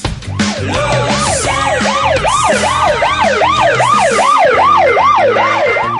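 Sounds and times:
siren of a garbage truck parked on Santa Cruz street: 0.2s - 5.9s.

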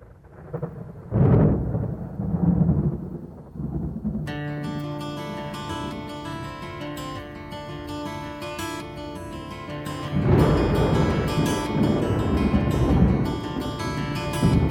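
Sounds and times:
rolling thunder at song's start: 0.0s - 4.3s, 10.2s - 14.6s.

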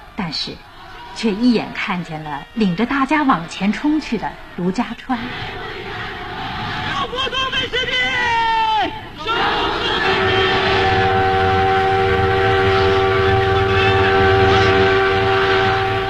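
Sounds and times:
crowd shouting: 0.0s - 16.0s
speech: 0.3s - 5.7s
freight train bound for Nanjing roaring: 0.8s - 16.0s
freight train horn: 9.3s - 16.0s.

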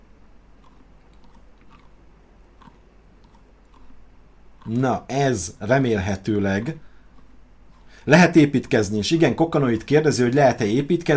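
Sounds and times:
person chewing a potato peeled with an axe: 0.4s - 8.1s
speech: 4.7s - 6.9s, 8.0s - 11.1s.

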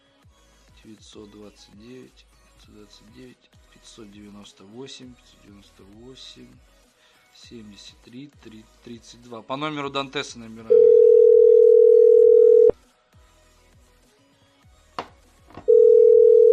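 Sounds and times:
telephone dial tone while calling a number: 10.7s - 12.7s, 15.6s - 16.5s.

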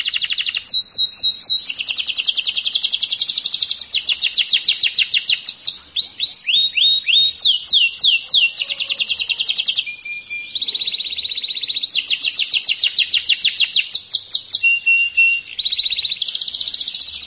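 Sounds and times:
canary singing buzzy trills: 0.0s - 17.2s.

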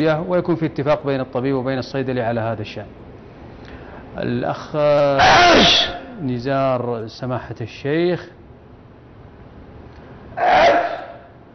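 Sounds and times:
speech: 0.0s - 3.0s, 4.2s - 8.4s
sheikh sneezing: 5.2s - 6.2s, 10.4s - 11.3s.

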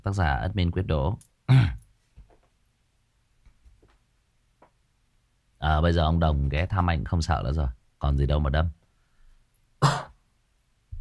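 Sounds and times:
speech: 0.0s - 1.7s, 5.6s - 8.8s
cough: 1.5s - 1.8s, 9.8s - 10.2s.

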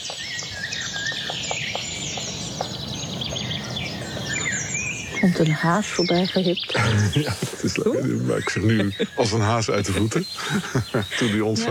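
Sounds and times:
high birdsong chirping: 0.0s - 11.6s
speech: 5.2s - 11.6s
laughter: 6.7s - 11.6s.

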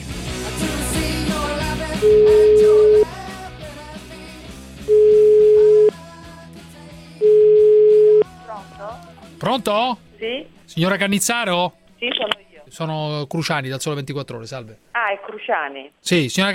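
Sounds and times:
music: 0.0s - 14.6s
speech: 2.0s - 2.4s, 9.5s - 16.5s
phone line ringing tones: 2.0s - 3.1s, 4.9s - 5.9s, 7.2s - 8.3s.

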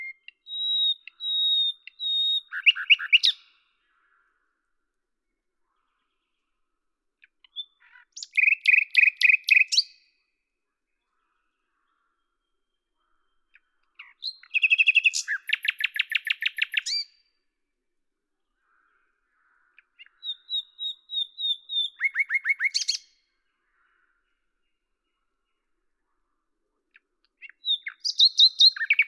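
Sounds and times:
common nightingale singing: 0.0s - 3.7s, 7.2s - 10.1s, 11.8s - 17.2s, 19.7s - 23.2s, 26.9s - 29.0s.

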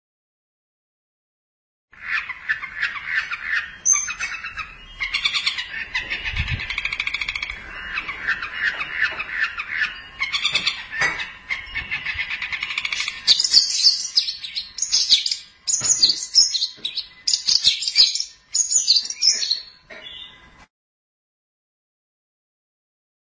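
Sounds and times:
Long-tailed Shrike singing: 2.4s - 20.4s.

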